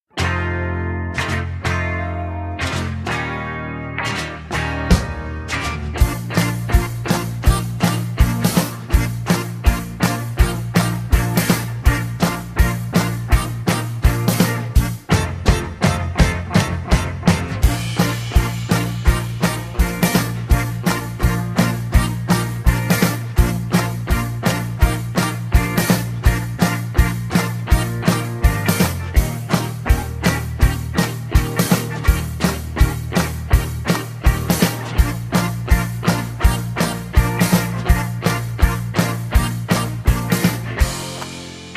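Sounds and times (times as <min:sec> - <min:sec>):
backing track in B-flat without backing vocals: 0:00.1 - 0:41.7.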